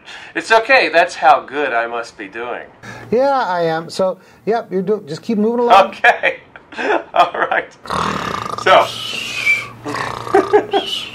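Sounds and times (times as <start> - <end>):
speech: 0.4 - 9.2
person snoring: 7.8 - 11.1.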